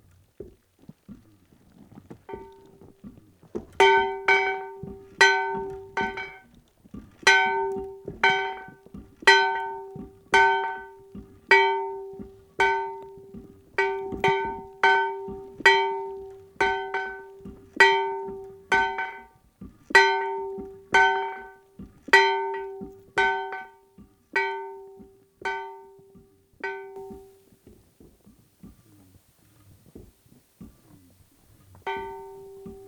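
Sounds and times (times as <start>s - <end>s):
snow-covered bell: 2.3s - 2.8s, 3.8s - 6.5s, 7.3s - 19.4s, 20.0s - 27.4s, 31.8s - 32.8s.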